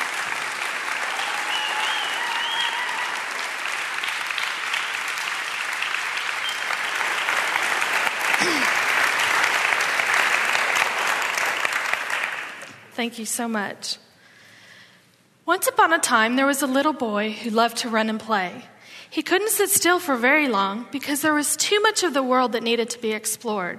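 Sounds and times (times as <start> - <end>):
audience applause welcoming a speaker to the platform: 0.0 - 12.8
speech: 13.0 - 14.1, 15.5 - 23.7.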